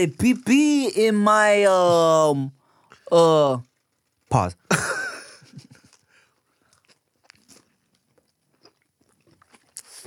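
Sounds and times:
speech: 0.0s - 3.7s, 4.3s - 5.0s
chewing a vegan burger with crunchy bites: 2.6s - 4.3s, 5.6s - 10.0s.

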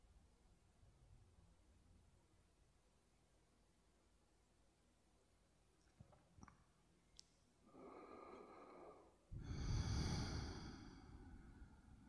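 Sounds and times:
slow deep breathing: 7.6s - 12.0s.

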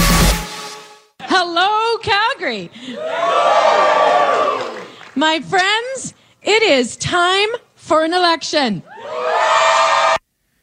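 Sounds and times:
speech: 1.4s - 3.9s, 5.2s - 9.3s
crowd cheering: 2.9s - 5.2s, 8.8s - 10.2s.

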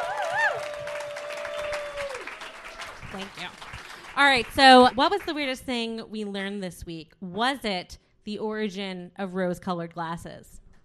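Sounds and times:
audience applauding: 0.0s - 5.4s
speech: 3.1s - 10.5s.

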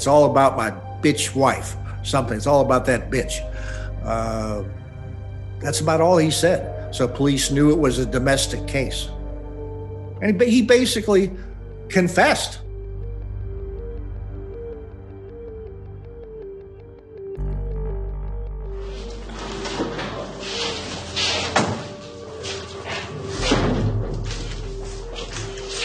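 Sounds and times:
speech: 0.0s - 4.8s, 5.6s - 9.2s, 10.2s - 12.6s
shuffling of man led from police car: 18.8s - 25.8s.

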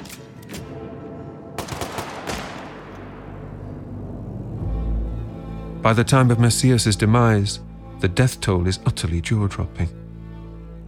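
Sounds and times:
firing squad gunfire in the yard of Black Beach Prison: 1.6s - 3.0s
speech: 5.8s - 10.0s.

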